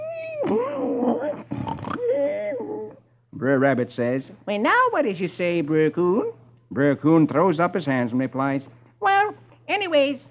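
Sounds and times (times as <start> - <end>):
person imitating loud comical snoring: 0.4 - 3.0
speech: 3.4 - 8.8, 10.0 - 10.2.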